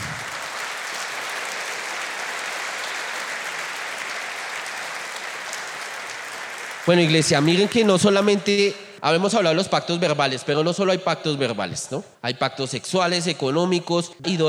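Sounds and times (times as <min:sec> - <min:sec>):
audience applause: 0:00.0 - 0:08.7
speech: 0:06.9 - 0:14.4.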